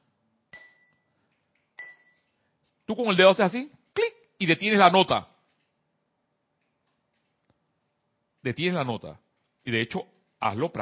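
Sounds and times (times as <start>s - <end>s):
glass bowl clinks: 0.5s - 1.1s, 1.8s - 2.3s
speech: 2.9s - 5.3s, 8.4s - 10.7s.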